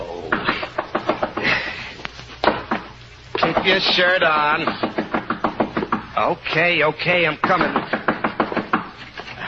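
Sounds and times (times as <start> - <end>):
knocking on a door: 0.3 - 1.5, 4.6 - 6.1, 7.4 - 8.9
speech: 3.7 - 4.9, 6.2 - 7.9.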